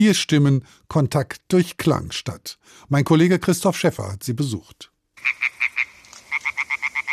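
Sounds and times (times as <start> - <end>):
speech: 0.0 - 5.8
frogs croaking at a pond in Oberbayern: 5.2 - 7.1.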